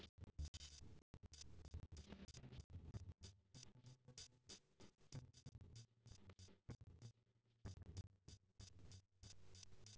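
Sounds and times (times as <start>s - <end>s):
drums: 0.0s - 9.9s.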